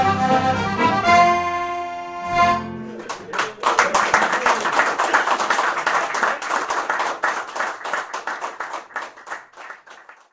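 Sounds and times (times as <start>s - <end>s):
Irish band playing a reel live: 0.0s - 3.6s
laughter: 2.6s - 6.9s.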